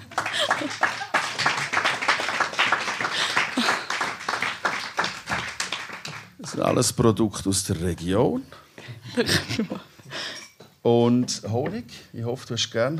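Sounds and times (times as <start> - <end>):
laughter: 0.0 - 1.8, 3.0 - 4.2, 9.0 - 10.0
audience clapping: 0.0 - 6.7
speech: 6.6 - 8.6, 9.2 - 9.9, 10.8 - 12.9.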